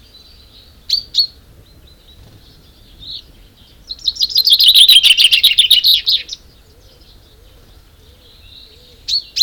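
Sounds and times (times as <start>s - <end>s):
common chaffinch rattling trilled song: 2.0s - 6.4s.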